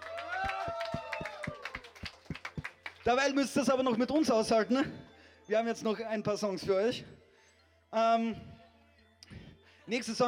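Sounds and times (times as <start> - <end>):
concert audience clapping at a dark metal show: 0.0 - 4.3
speech: 3.1 - 7.2, 7.9 - 8.5, 9.9 - 10.2.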